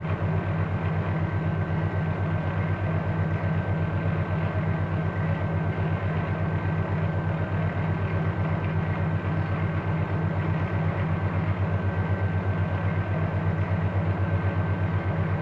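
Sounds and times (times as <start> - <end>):
submarine engines: 0.0 - 15.3.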